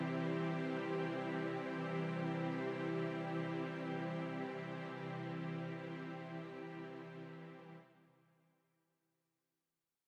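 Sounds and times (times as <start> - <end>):
strings: 0.0 - 7.9.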